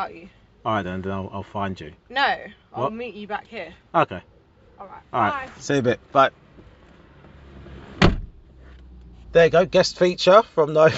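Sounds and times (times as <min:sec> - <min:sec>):
speech: 0:00.0 - 0:06.4, 0:09.3 - 0:10.9
car door slammed hard: 0:07.7 - 0:08.4.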